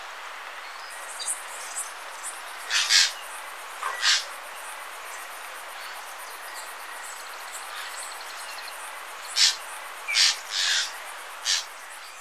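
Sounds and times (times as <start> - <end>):
Beautiful Jay calling in Ecuador: 2.7 - 3.2, 3.8 - 4.3, 9.3 - 11.7.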